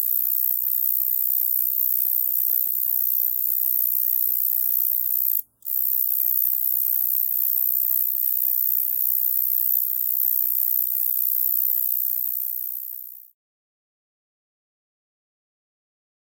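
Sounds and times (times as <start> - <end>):
Roesel's bush-cricket Metrioptera roeselii chirping: 0.0 - 13.3.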